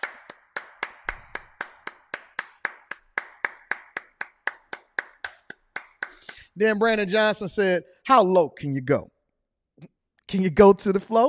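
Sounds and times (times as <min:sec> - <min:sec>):
hands clapping along: 0:00.0 - 0:06.9
speech: 0:06.6 - 0:09.1, 0:10.3 - 0:11.2.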